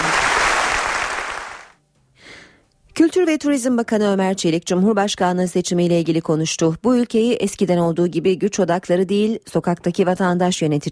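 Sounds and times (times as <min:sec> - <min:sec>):
audience applause in a hall: 0:00.0 - 0:01.7
speech: 0:03.0 - 0:10.9.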